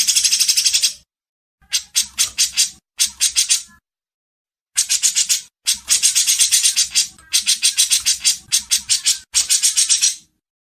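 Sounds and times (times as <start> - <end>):
bulbul chattering: 1.6 - 3.8, 4.8 - 10.3.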